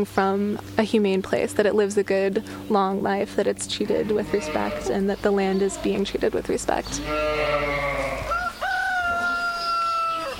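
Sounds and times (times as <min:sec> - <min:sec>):
speech: 0:00.0 - 0:07.8
rooster crowing at Chestnut Farm in Hardwick, Massachusetts: 0:07.3 - 0:10.3.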